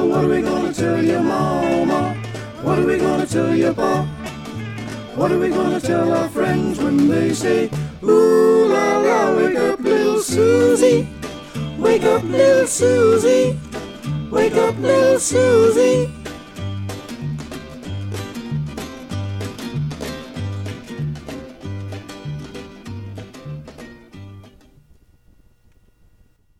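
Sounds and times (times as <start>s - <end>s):
soprano singing: 0.0s - 16.2s.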